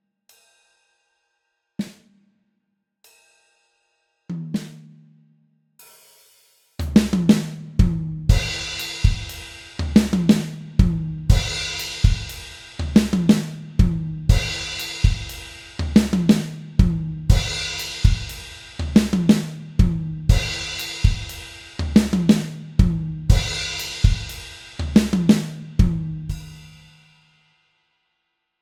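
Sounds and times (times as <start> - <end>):
drums: 1.8 - 2.1, 4.3 - 5.1, 5.8 - 27.4.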